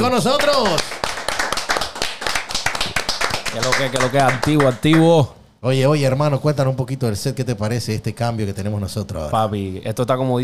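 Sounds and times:
speech: 0.0s - 0.9s, 3.6s - 10.4s
applause: 0.0s - 5.1s.

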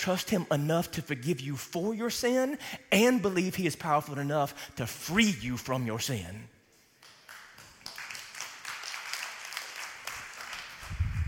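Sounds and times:
speech: 0.0s - 6.5s
weak audience clapping: 6.9s - 11.2s.

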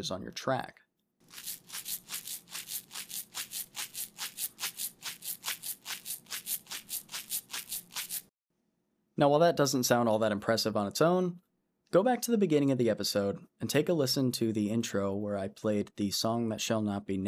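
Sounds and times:
speech: 0.0s - 1.8s, 9.2s - 17.2s
rice shaken in a small plastic container as a shaker: 1.2s - 8.3s.

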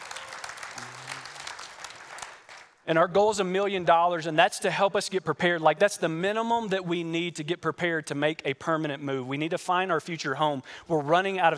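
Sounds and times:
audience clapping: 0.0s - 2.8s
speech: 2.9s - 11.5s.

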